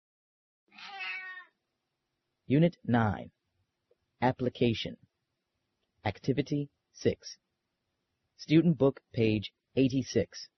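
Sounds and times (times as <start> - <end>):
cat meowing: 0.7 - 1.6
speech: 2.5 - 3.4, 4.2 - 5.1, 6.0 - 7.4, 8.4 - 10.5.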